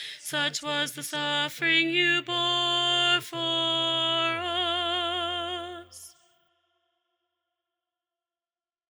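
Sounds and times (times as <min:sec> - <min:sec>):
highly exalted soprano choir part singing: 0:00.0 - 0:06.1.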